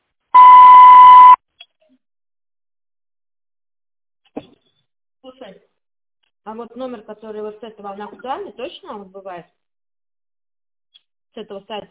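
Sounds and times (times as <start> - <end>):
voicemail tone beep: 0.4 - 1.4
speech: 5.3 - 5.7, 6.4 - 9.6, 11.4 - 11.8.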